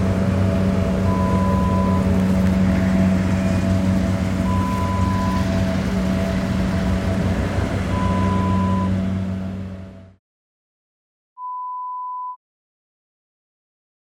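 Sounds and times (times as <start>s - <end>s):
ride-on mower engine: 0.0s - 10.2s.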